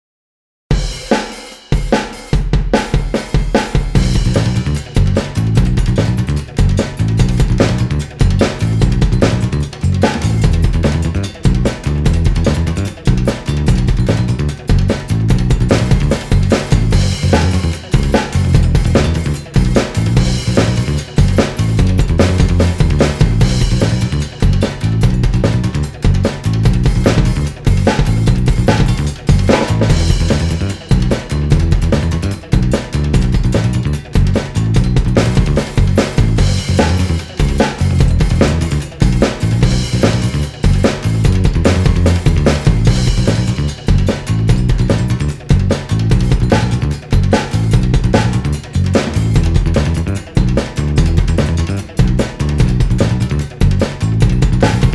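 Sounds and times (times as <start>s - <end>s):
rock music: 0.7s - 54.9s.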